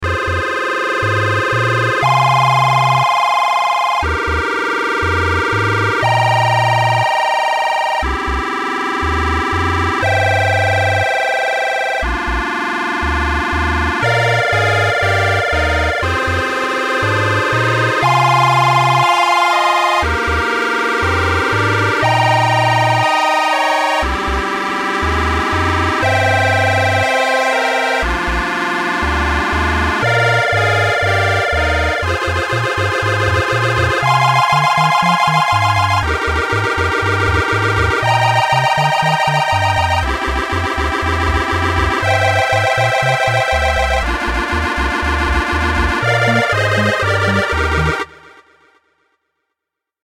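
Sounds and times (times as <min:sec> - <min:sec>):
chiptune music: 0:00.0 - 0:48.6.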